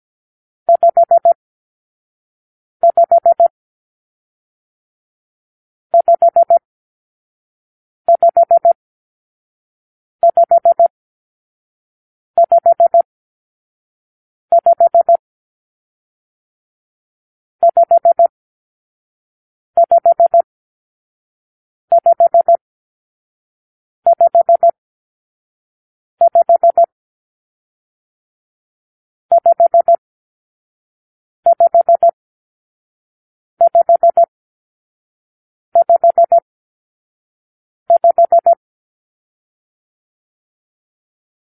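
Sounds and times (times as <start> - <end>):
morse code for numeral five: 0.7 - 1.4, 2.8 - 3.5, 6.0 - 6.6, 8.1 - 8.8, 10.2 - 10.9, 12.4 - 13.1, 14.5 - 15.2, 17.6 - 18.3, 19.8 - 20.5, 21.9 - 22.6, 24.1 - 24.8, 26.2 - 26.9, 29.3 - 30.0, 31.5 - 32.2, 33.6 - 34.3, 35.8 - 36.5, 37.9 - 38.6.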